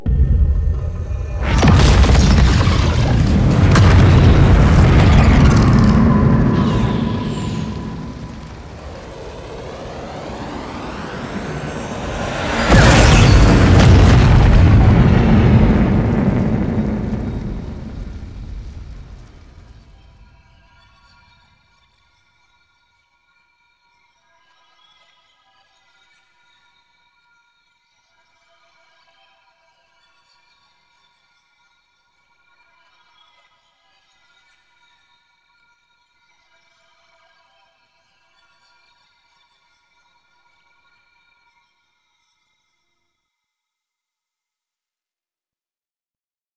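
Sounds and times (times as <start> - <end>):
cinematic end sound effect: 0.0 - 20.4.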